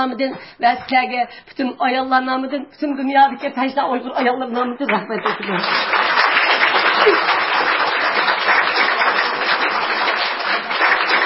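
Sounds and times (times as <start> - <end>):
speech: 0.0 - 6.2
assembly audience applause after a closing speech: 5.2 - 11.2.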